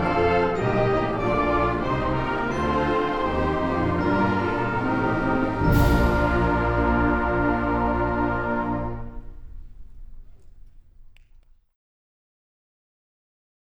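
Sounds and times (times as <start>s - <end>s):
wind band playing a flourish: 0.0s - 10.6s.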